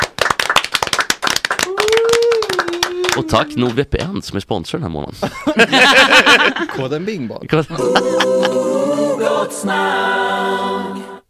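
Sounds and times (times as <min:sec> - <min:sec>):
hand clapping applause: 0:00.0 - 0:04.1
speech: 0:03.2 - 0:11.1
laughter: 0:05.2 - 0:06.8, 0:07.7 - 0:09.0.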